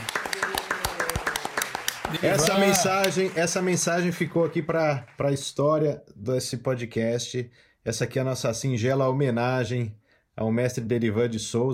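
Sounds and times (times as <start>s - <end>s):
round of applause: 0.0s - 5.6s
speech: 2.1s - 11.7s.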